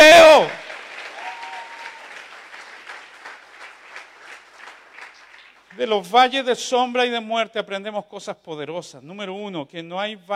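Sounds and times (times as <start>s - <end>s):
audience applauding: 0.0s - 5.9s
speech: 5.8s - 10.3s.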